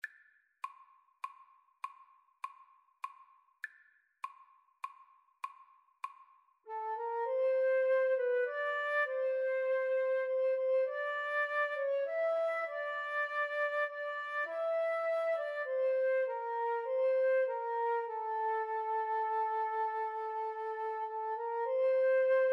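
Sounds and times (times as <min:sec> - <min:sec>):
flute and clarinet duet: 0:06.7 - 0:22.5.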